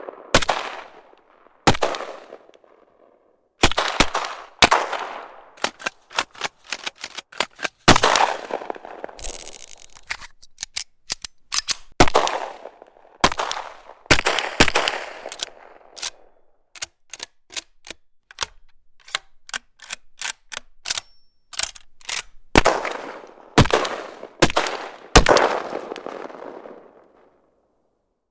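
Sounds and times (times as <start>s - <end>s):
assorted firearms gunshots: 0.0s - 2.9s, 3.6s - 6.8s, 7.5s - 9.9s, 12.0s - 16.2s, 22.5s - 27.3s.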